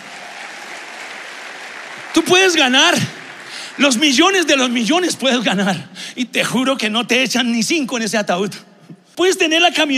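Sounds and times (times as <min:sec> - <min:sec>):
audience applause: 0:00.0 - 0:05.9
speech: 0:02.2 - 0:03.2, 0:03.8 - 0:09.9.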